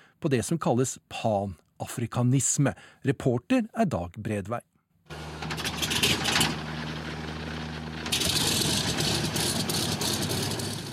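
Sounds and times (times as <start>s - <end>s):
speech: 0.2s - 5.2s
DC-3 propeller engines starting up: 5.1s - 10.9s.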